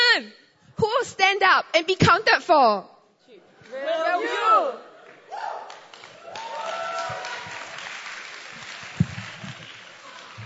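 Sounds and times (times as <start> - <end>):
speech: 0.2 - 2.9
audience applause: 5.1 - 10.4.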